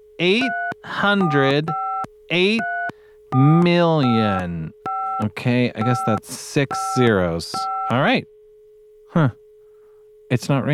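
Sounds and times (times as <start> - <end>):
faint constant hum: 0.0 - 10.7
speech: 0.2 - 8.3, 9.2 - 9.4, 10.3 - 10.7
electronic keypad beeps as a phone number is dialed: 0.3 - 8.0.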